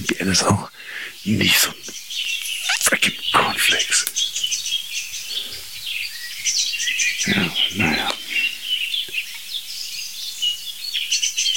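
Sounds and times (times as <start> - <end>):
blackbird singing: 0.0 - 11.5
speech: 0.1 - 4.5
song thrush singing: 1.2 - 9.2.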